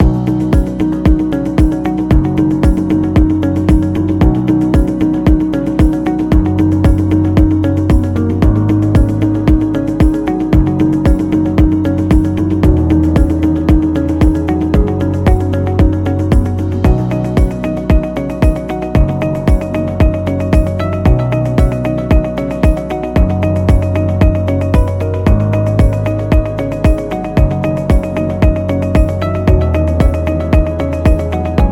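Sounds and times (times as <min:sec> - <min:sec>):
corporate music loop: 0:00.0 - 0:31.7.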